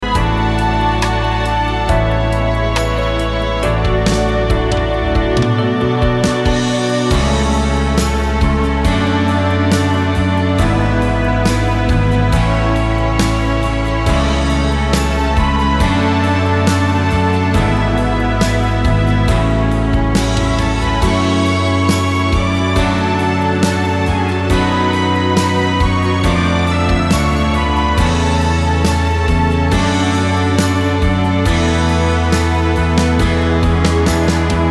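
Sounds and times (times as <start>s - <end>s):
live instrumental finale: 0.0s - 34.6s.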